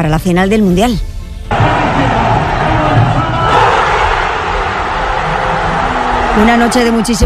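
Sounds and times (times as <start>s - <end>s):
speech: 0.0s - 2.0s, 6.4s - 7.2s
crowd cheering football goals in Plaza del Pilar: 1.5s - 7.2s.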